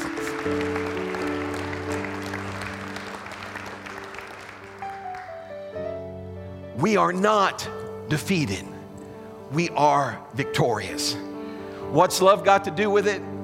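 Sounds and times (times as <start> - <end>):
audience clapping hands in praise: 0.0 - 5.8
sustained organ or keyboard chords: 0.0 - 13.4
speech: 0.4 - 0.8, 6.8 - 8.7, 9.5 - 11.3, 11.9 - 13.3.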